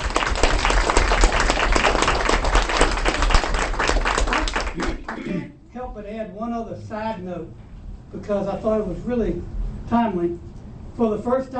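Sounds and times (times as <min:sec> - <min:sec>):
audience applause: 0:00.0 - 0:05.2
speech: 0:05.9 - 0:11.5.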